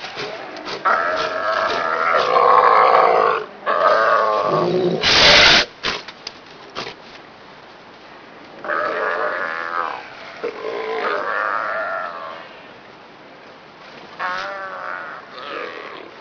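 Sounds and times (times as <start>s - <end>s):
southern sea lions calling in a chorus of bawls and grunts: 0.0s - 5.1s, 8.6s - 12.7s, 14.2s - 16.1s.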